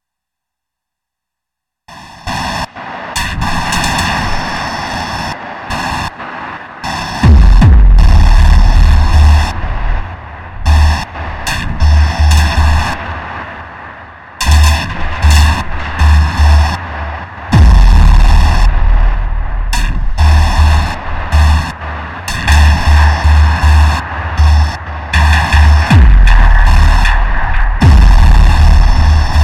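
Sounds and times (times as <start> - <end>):
noise filth beat: 6.8 - 13.4, 14.4 - 29.4.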